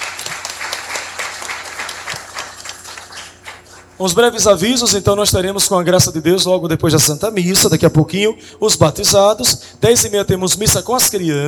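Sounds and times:
audience applause: 0.0s - 4.0s
speech: 4.0s - 11.4s.

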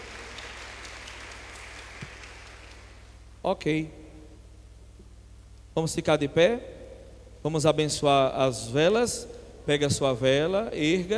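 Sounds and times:
crowd applauding: 0.0s - 3.2s
low electrical hum: 0.0s - 11.1s
speech: 3.4s - 4.0s, 5.8s - 6.8s, 7.4s - 11.1s.

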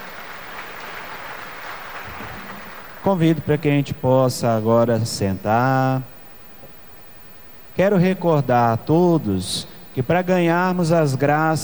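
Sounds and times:
church congregation applauding: 0.0s - 4.6s
speech: 3.0s - 6.1s, 7.8s - 11.6s.

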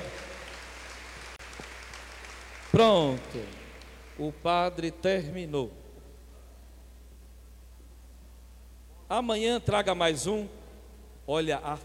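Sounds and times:
parish members applauding for a birthday: 0.0s - 4.3s
low steady hum: 0.0s - 11.8s
speech: 2.8s - 3.6s, 4.2s - 5.8s, 9.1s - 10.6s, 11.3s - 11.8s.

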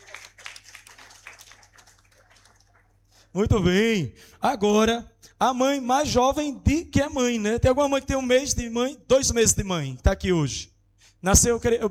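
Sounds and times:
audience clapping: 0.0s - 3.3s
speech: 3.3s - 11.8s.

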